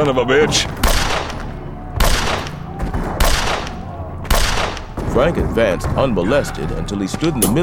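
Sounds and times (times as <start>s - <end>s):
speech: 0.0s - 0.9s, 5.2s - 7.6s
Colt Peacemaker revolver gunshots fired while walking: 0.8s - 5.2s.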